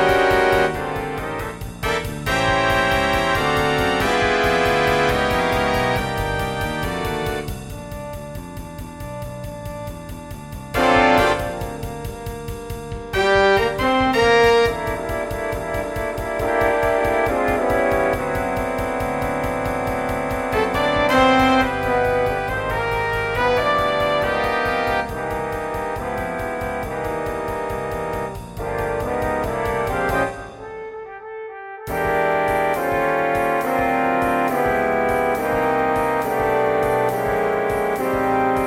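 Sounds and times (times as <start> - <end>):
big band playing in B flat: 0.0 - 31.2, 31.9 - 38.6.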